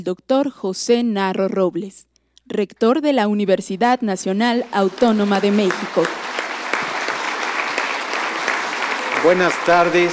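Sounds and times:
speech: 0:00.0 - 0:06.2, 0:09.2 - 0:10.1
audience applause: 0:04.6 - 0:10.1.

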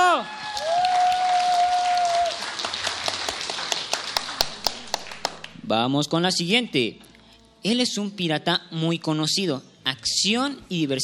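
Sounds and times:
audience applause: 0:00.0 - 0:05.6
speech: 0:05.7 - 0:11.0.

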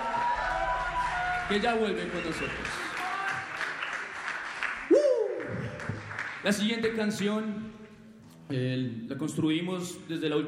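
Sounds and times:
audience applause: 0:00.0 - 0:06.7
speech: 0:01.5 - 0:02.9, 0:06.4 - 0:07.8, 0:08.5 - 0:10.4.

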